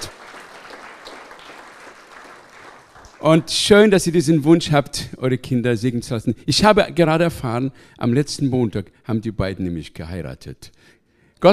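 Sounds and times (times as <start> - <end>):
audience applause: 0.0 - 3.5
speech: 3.2 - 11.5.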